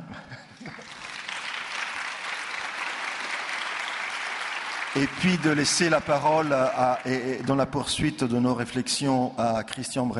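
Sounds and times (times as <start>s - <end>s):
audience applause: 0.6s - 8.0s
speech: 5.0s - 10.1s.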